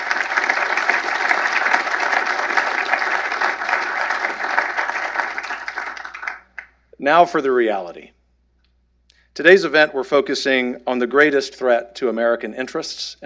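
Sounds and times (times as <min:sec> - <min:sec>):
audience applause: 0:00.0 - 0:06.7
speech: 0:07.0 - 0:08.1, 0:09.4 - 0:13.2.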